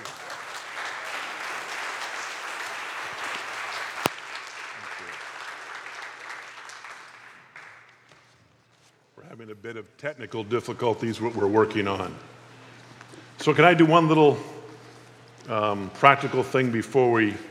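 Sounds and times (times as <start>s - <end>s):
church audience applause welcoming a guest speaker: 0.0s - 8.1s
speech: 9.6s - 12.3s, 13.4s - 14.5s, 15.5s - 17.4s.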